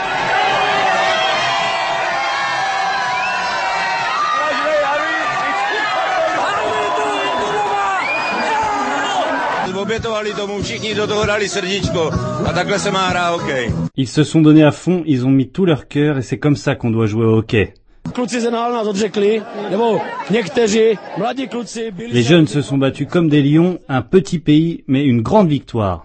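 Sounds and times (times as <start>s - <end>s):
crowd of supporters cheering and applauding: 0.0s - 9.8s, 19.4s - 21.5s
speech: 10.1s - 26.0s
laughter: 18.8s - 23.9s.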